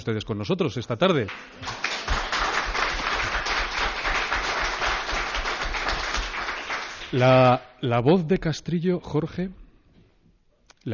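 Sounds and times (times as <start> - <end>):
speech: 0.0 - 1.9, 7.1 - 9.6
audience applauding in a town hall: 1.3 - 7.5.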